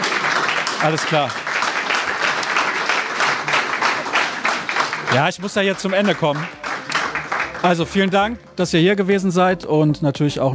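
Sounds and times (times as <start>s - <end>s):
audience applause: 0.0s - 8.3s
speech: 0.8s - 1.4s, 5.1s - 6.6s, 7.6s - 10.5s.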